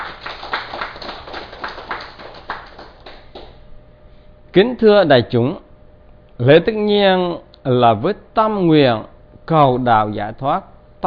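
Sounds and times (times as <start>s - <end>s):
round of applause: 0.0s - 3.6s
speech: 4.5s - 5.6s, 6.4s - 11.0s.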